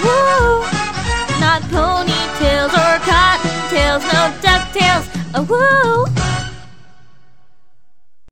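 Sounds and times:
female singers singing a cover: 0.0s - 0.7s, 1.4s - 6.1s.

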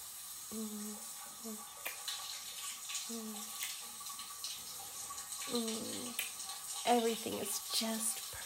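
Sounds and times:
shower water running: 0.0s - 8.4s
soft wordless voice sounds: 0.5s - 1.7s, 3.1s - 3.5s, 5.5s - 6.2s
speech: 0.5s - 1.9s, 3.1s - 3.7s, 5.5s - 8.3s.

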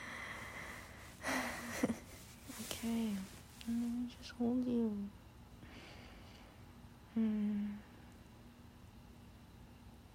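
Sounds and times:
quiet breathing: 0.0s - 4.0s, 5.6s - 8.1s
speech: 2.8s - 5.2s, 7.2s - 7.8s.

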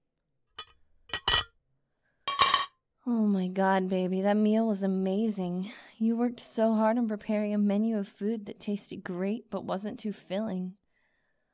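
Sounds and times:
wine glasses clinking: 0.6s - 1.5s, 2.3s - 2.7s
speech: 3.1s - 10.8s.

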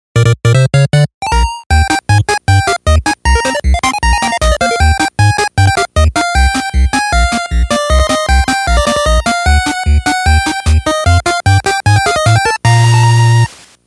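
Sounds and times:
8-bit chiptune: 0.1s - 13.5s.

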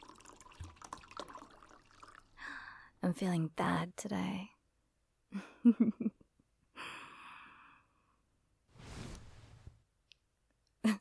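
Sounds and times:
water and wine poured into glasses: 0.0s - 2.4s
speech: 3.1s - 4.6s, 5.3s - 6.2s.

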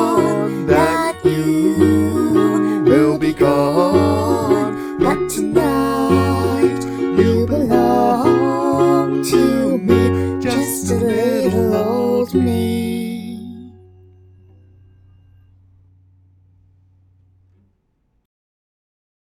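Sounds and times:
person singing: 0.0s - 13.9s
ukulele: 0.0s - 14.9s
cello: 0.0s - 16.2s.

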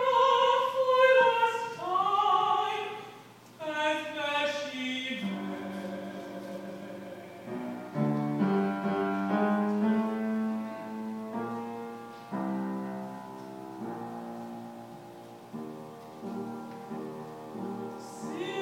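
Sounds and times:
opera soprano singing: 0.0s - 11.0s, 17.5s - 18.5s
mezzo-soprano singing: 0.0s - 18.5s.

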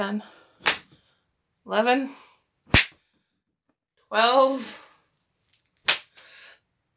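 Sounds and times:
speech: 0.0s - 0.4s, 1.6s - 2.8s, 4.1s - 4.8s
right hand whipping left thigh: 0.6s - 1.0s, 2.7s - 3.0s, 5.8s - 6.2s.

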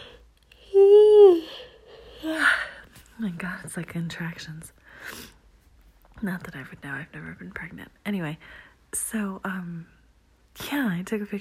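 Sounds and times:
person yawning: 0.6s - 2.6s
speech: 3.2s - 5.4s, 6.2s - 10.0s, 10.6s - 11.4s.

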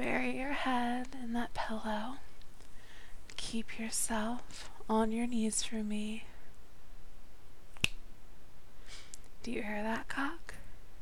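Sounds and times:
speech: 0.0s - 2.3s, 3.5s - 6.3s, 9.4s - 10.6s
fingers snapping: 7.8s - 8.0s.

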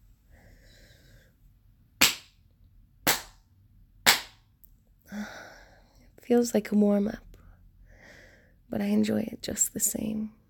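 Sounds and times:
slow deliberate spanking slaps: 2.0s - 2.4s, 3.1s - 3.4s, 4.1s - 4.4s
speech: 6.3s - 7.3s, 8.7s - 10.4s.

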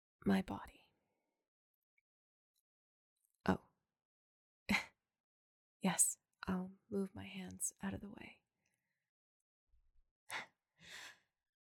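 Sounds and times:
speech: 0.2s - 0.8s, 3.4s - 3.6s, 5.8s - 8.4s
gasp: 10.3s - 11.2s.

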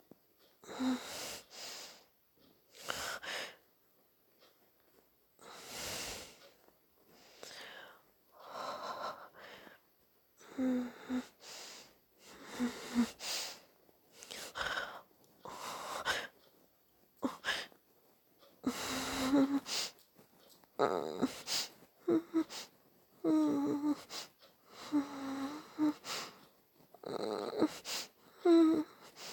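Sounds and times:
person breathing heavily, quiet and nervous: 0.6s - 2.1s, 2.7s - 3.6s, 5.4s - 16.4s, 17.2s - 17.8s, 18.6s - 20.0s, 20.9s - 26.5s, 27.6s - 29.3s.

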